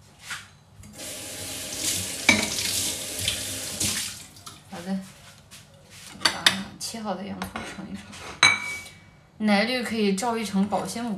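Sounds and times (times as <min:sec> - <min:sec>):
tap water running over a dusty plate in the kitchen: 0:01.0 - 0:04.3
speech: 0:07.0 - 0:08.6, 0:09.4 - 0:11.1.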